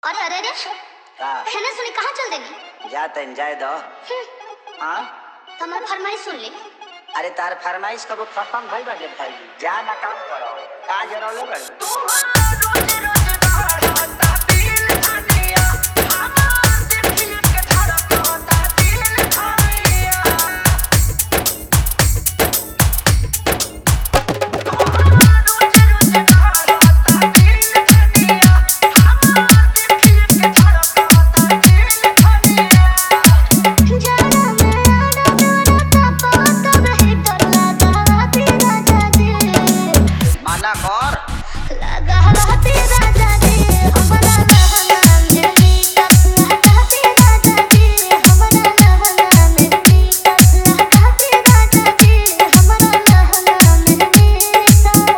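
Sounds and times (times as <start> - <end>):
hard dholki bass mix: 12.4 - 41.4, 42.1 - 55.1.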